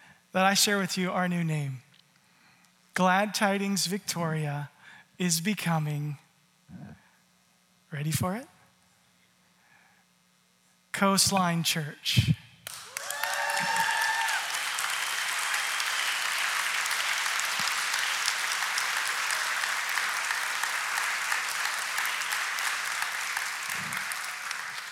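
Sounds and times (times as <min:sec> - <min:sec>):
speech: 0:00.3 - 0:01.9, 0:03.0 - 0:06.9, 0:07.9 - 0:08.5, 0:11.0 - 0:12.4
audience applause: 0:12.7 - 0:24.9
cheer or whistle: 0:12.9 - 0:14.6.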